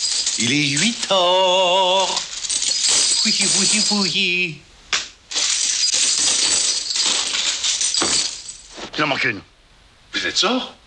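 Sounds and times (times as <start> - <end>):
coins clinking as a hand stirs them: 0.0 - 4.4, 5.3 - 8.8
speech: 0.4 - 2.2, 3.2 - 4.7, 9.0 - 9.5, 10.2 - 10.8.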